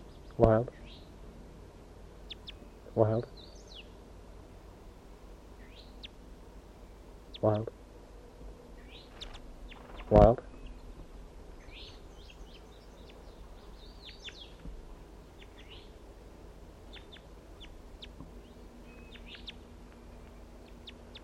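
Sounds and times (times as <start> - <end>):
wild bird calling with chirps and whistles: 0.0 - 1.2, 2.2 - 4.0, 5.6 - 7.7, 8.7 - 11.0, 11.6 - 16.0, 16.8 - 21.2
steady low hum: 0.0 - 21.2
speech: 0.4 - 0.9, 3.0 - 3.5, 7.4 - 7.8, 10.1 - 10.5.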